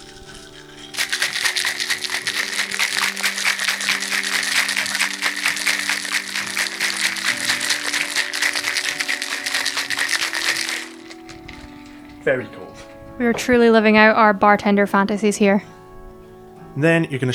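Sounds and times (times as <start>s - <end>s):
cocktail shaker full of ice rattling: 0.0s - 12.3s
speech: 12.3s - 12.6s, 13.2s - 15.7s, 16.8s - 17.3s.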